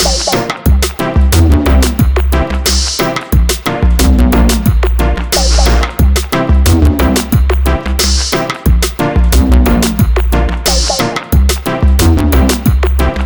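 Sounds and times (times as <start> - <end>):
future dub music: 0.0 - 13.2.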